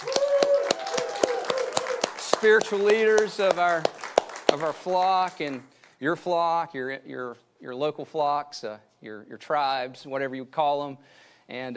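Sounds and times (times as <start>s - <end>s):
audience clapping hands: 0.0s - 6.0s
speech: 2.4s - 11.7s.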